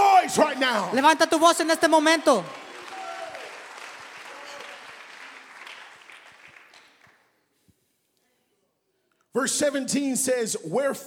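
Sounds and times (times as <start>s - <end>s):
speech: 0.3s - 2.6s, 9.4s - 11.0s
audience clapping hands: 0.6s - 7.4s.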